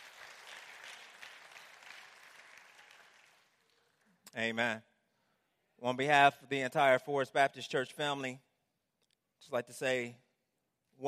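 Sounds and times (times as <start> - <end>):
audience hand clapping: 0.0 - 4.3
speech: 4.4 - 4.9, 5.8 - 8.5, 9.4 - 10.2.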